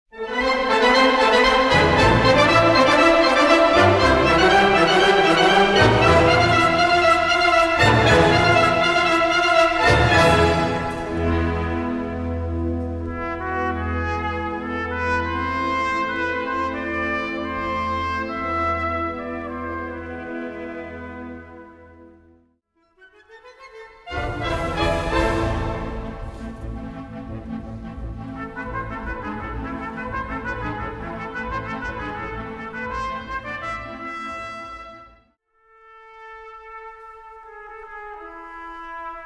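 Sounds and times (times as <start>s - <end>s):
trumpet: 0.1s - 39.2s
band playing: 0.4s - 12.3s, 24.1s - 27.3s.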